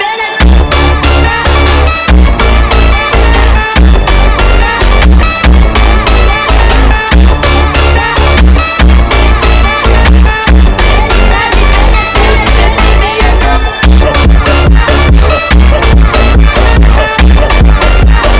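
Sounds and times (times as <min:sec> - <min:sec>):
sped up funk music: 0:00.1 - 0:18.3.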